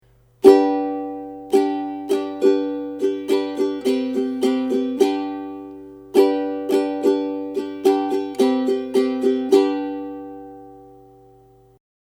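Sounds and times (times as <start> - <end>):
ukulele strumming: 0.1 - 11.7.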